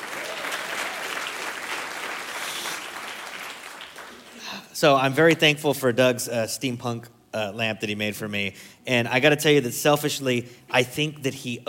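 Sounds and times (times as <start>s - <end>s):
audience applause for the band: 0.0s - 4.6s
speech: 4.8s - 11.6s.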